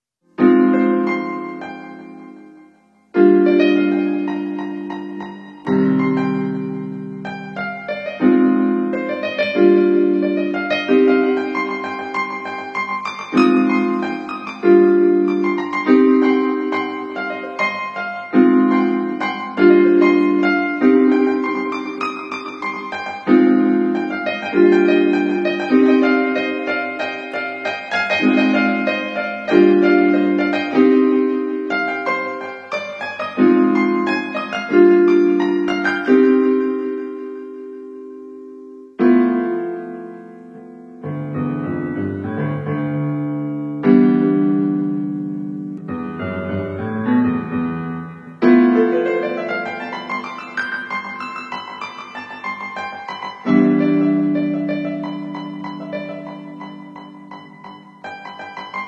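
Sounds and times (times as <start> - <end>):
piano: 0.2 - 58.8.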